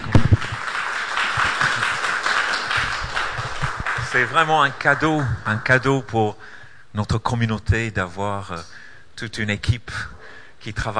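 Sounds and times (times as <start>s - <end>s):
audience applause: 0.0s - 5.8s
speech: 4.1s - 10.9s.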